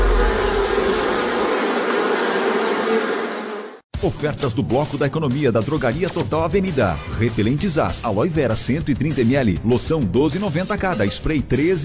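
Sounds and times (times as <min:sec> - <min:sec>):
low rumble: 0:00.0 - 0:01.5
mosquito buzzing: 0:00.0 - 0:03.8
speech: 0:04.0 - 0:11.8.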